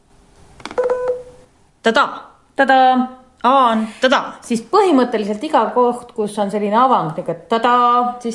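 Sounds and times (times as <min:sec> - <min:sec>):
Morse code letter A electronic beeps: 0:00.8 - 0:01.4
speech: 0:01.8 - 0:08.3.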